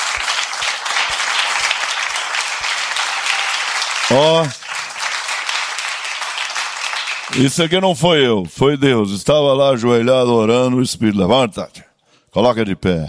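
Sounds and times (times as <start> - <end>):
audience applauding: 0.0 - 7.8
speech: 4.1 - 4.6, 7.3 - 13.0.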